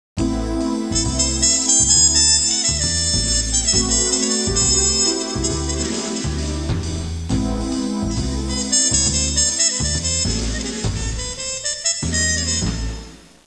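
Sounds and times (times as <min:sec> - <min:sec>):
jazz music ringtone: 0:00.2 - 0:13.2.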